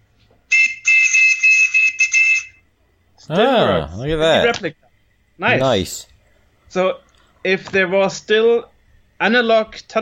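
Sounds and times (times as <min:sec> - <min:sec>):
Captain Crunch toy whistle: 0:00.5 - 0:02.6
speech: 0:03.3 - 0:04.8, 0:05.4 - 0:06.1, 0:06.7 - 0:10.0.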